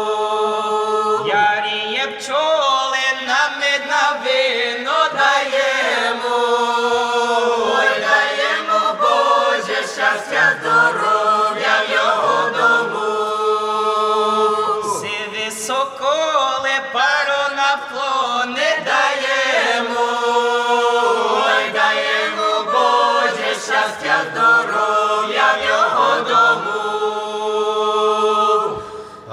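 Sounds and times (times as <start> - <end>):
choir singing a carol: 0.0 - 29.3.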